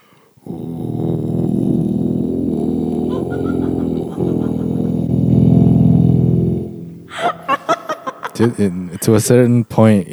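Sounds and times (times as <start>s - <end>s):
very low vocal humming: 0.4s - 9.2s
person laughing: 3.1s - 5.4s, 6.6s - 9.1s
speech: 8.4s - 10.1s.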